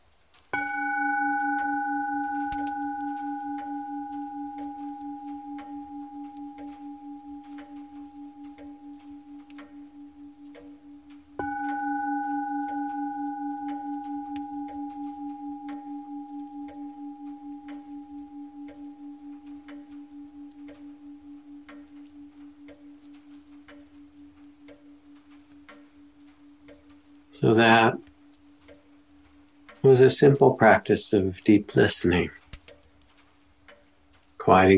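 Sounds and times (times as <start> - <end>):
meditation bell ringing: 0.5 - 28.0
speech: 27.4 - 28.0, 29.9 - 32.4, 34.5 - 34.7.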